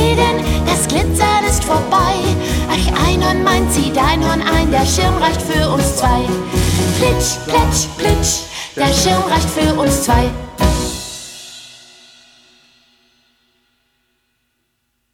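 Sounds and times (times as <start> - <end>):
soprano voice: 0.0 - 10.4.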